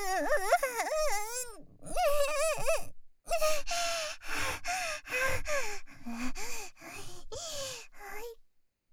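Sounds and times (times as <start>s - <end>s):
asthmatic wheezing: 0.2s - 6.8s
person panting: 1.4s - 6.8s.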